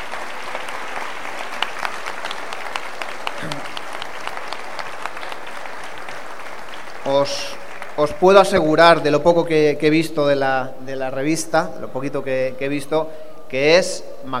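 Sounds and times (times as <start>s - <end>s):
loud applause: 0.0s - 9.0s
speech: 7.1s - 14.3s.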